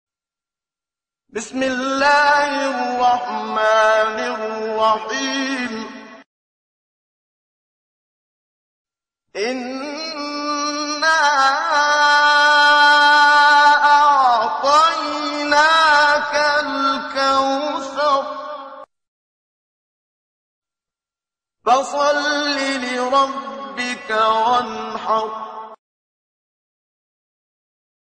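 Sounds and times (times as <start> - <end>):
recitation of a holy surah: 1.3 - 6.3, 9.4 - 18.9, 21.7 - 25.8.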